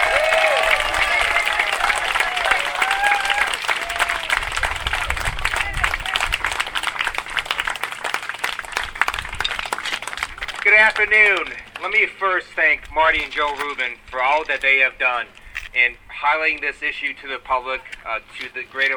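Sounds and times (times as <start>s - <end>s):
audience applause for state assemblyman Ted Lieu: 0.0s - 12.1s
speech: 11.0s - 18.9s.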